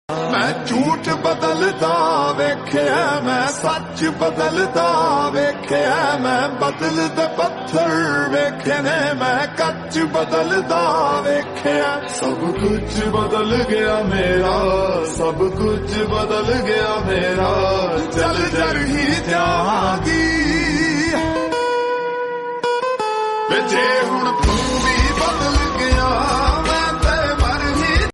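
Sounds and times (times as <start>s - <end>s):
lofi Punjabi song: 0.1s - 28.1s.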